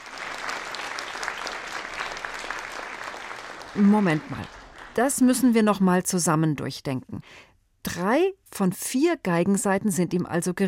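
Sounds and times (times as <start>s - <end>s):
audience applauding wildly: 0.0s - 5.4s
speech: 3.8s - 10.6s.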